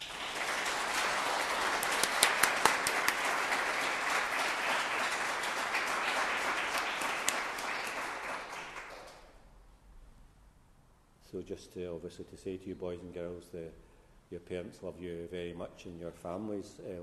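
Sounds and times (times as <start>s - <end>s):
audience applause: 0.0s - 9.3s
speech: 11.3s - 17.0s.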